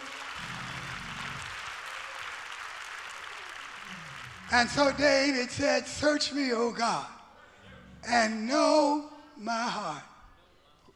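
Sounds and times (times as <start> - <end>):
people clapping hands: 0.0 - 5.6
speech: 4.5 - 7.2, 8.0 - 10.1.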